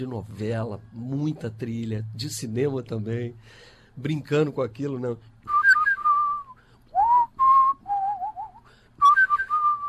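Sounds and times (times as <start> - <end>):
speech: 0.0 - 5.6
person whistling a lilting melody: 5.5 - 9.8.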